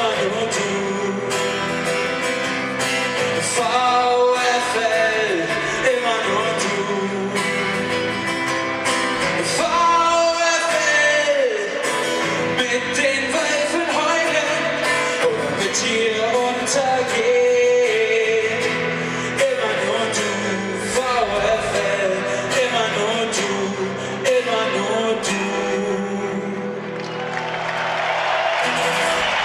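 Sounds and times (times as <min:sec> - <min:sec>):
large crowd singing a rousing anthem: 0:00.0 - 0:01.8, 0:03.2 - 0:08.1, 0:09.3 - 0:26.9
steady music: 0:00.0 - 0:29.4
applause and cheering: 0:26.8 - 0:29.4.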